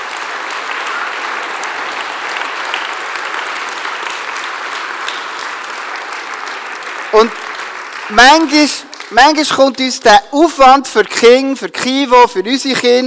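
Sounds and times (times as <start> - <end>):
audience applause: 0.0 - 9.9
speech: 8.1 - 13.0.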